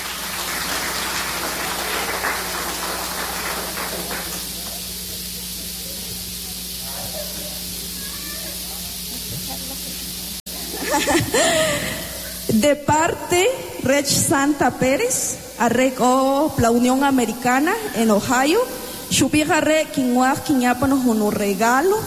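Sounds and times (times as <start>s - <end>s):
audience applause: 0.0s - 5.8s
laughter: 6.8s - 8.0s, 9.1s - 12.5s, 17.6s - 18.6s
speech: 11.0s - 11.9s, 12.6s - 22.0s.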